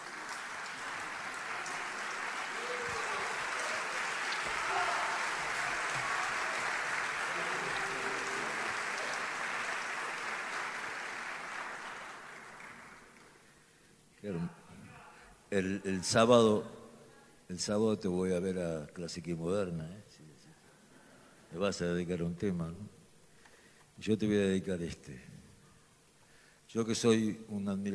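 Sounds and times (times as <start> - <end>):
audience applause: 0.0 - 13.4
speech: 15.5 - 16.8, 17.5 - 20.2, 21.5 - 23.0, 24.0 - 25.3, 26.7 - 27.9.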